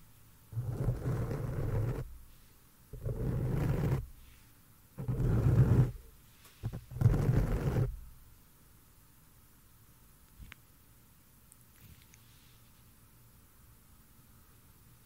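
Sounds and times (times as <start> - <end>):
hands rubbing a microphone: 0.6 - 2.1, 3.0 - 4.1, 5.0 - 6.0, 6.6 - 8.0.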